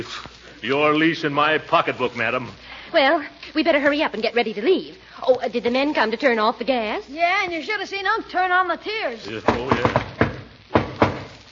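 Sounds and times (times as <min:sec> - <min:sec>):
speech: 0:00.0 - 0:10.2
knocking on a door in a distinctive pattern: 0:09.4 - 0:11.3.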